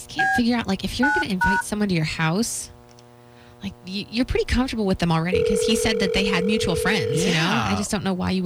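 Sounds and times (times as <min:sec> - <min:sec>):
speech: 0:00.4 - 0:02.8, 0:03.6 - 0:08.4
telephone keypad tones while dialing a call: 0:05.3 - 0:07.8.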